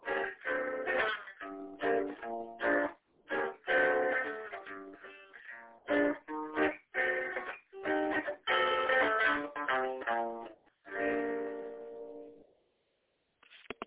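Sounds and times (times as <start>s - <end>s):
minor key swing music: 0.0s - 12.3s.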